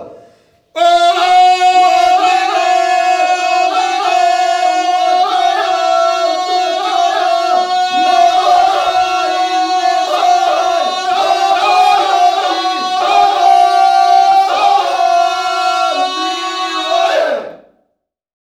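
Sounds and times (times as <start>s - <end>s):
ojkanje Croatian folk singing: 0.7s - 17.7s.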